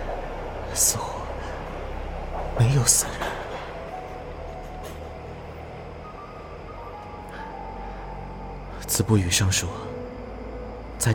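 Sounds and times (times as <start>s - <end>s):
subway train idling at a station: 0.0s - 11.1s
speech: 0.8s - 1.1s, 2.6s - 3.3s, 9.0s - 10.0s.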